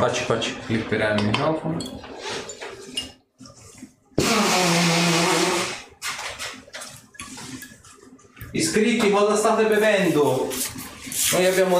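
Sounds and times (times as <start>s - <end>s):
speech: 0.0s - 2.5s, 8.7s - 11.7s
person blowing their nose: 4.2s - 5.9s.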